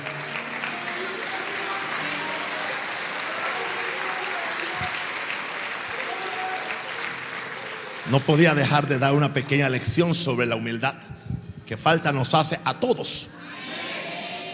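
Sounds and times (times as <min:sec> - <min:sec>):
audience applause: 0:00.0 - 0:10.2
speech: 0:08.1 - 0:11.1, 0:11.7 - 0:13.4.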